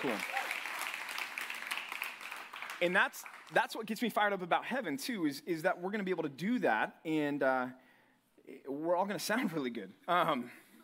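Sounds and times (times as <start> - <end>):
speech: 0.0 - 0.4, 2.8 - 7.8, 8.5 - 10.6
audience applauding: 0.0 - 3.6.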